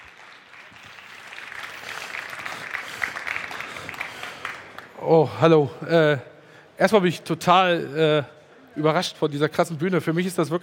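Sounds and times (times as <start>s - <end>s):
audience applause: 0.0s - 4.9s
speech: 5.0s - 10.6s.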